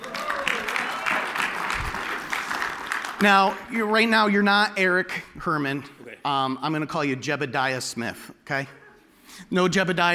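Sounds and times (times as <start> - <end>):
round of applause: 0.0 - 3.7
speech: 3.2 - 10.1.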